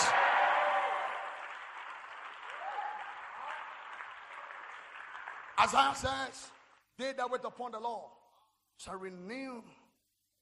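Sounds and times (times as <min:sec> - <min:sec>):
audience clapping: 0:00.0 - 0:06.9
speech: 0:05.6 - 0:08.2, 0:08.8 - 0:09.8.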